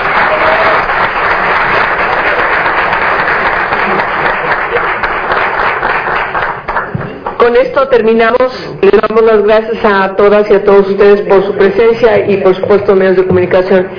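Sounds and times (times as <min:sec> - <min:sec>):
audience applause: 0:00.0 - 0:07.4
speech: 0:07.5 - 0:13.9.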